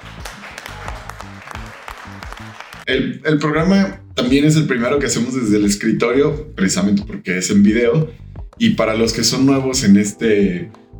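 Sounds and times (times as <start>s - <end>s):
crowd round of applause: 0.0s - 2.9s
speech: 2.9s - 10.9s.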